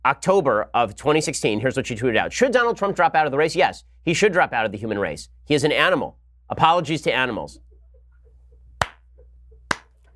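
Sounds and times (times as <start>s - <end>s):
speech: 0.0s - 7.7s
slow hand clapping: 8.8s - 10.0s.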